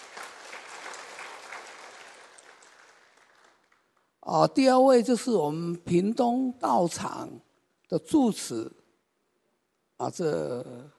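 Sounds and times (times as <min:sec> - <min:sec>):
audience applause: 0:00.0 - 0:03.9
speech: 0:04.2 - 0:08.8, 0:10.0 - 0:10.9.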